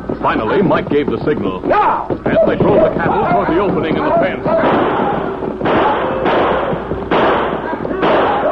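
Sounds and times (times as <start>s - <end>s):
speech: 0.3s - 5.3s
loud six-gun gunshots: 2.5s - 8.5s.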